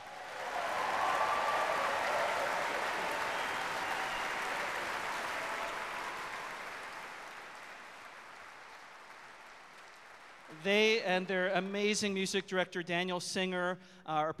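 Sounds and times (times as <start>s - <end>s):
audience applause: 0.0s - 11.5s
speech: 10.6s - 14.3s.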